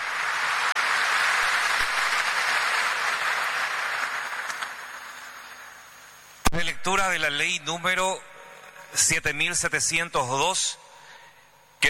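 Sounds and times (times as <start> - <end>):
audience applause: 0.0 - 6.0
speech: 6.8 - 8.3, 8.9 - 10.8.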